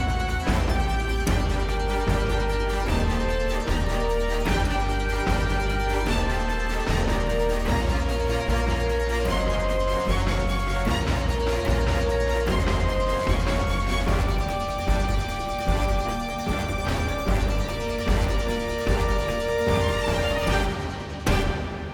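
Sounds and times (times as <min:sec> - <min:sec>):
exciting music: 0:00.0 - 0:21.9.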